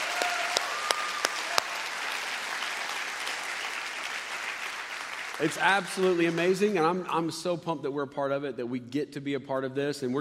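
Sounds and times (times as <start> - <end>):
audience applause: 0.0 - 7.1
speech: 5.4 - 10.1.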